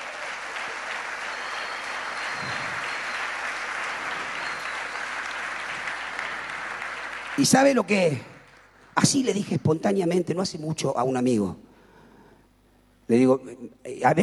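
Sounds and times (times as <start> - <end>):
audience applause: 0.0 - 9.4
speech: 7.4 - 8.3, 9.1 - 11.6, 13.1 - 14.2.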